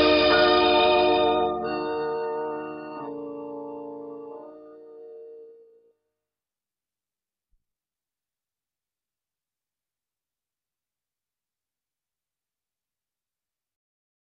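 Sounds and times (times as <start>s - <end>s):
instrumental theme music: 0.0s - 6.0s.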